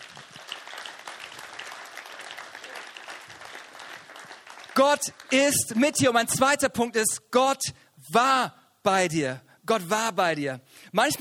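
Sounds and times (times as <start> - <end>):
audience applause: 0.0 - 5.5
speech: 4.8 - 11.2.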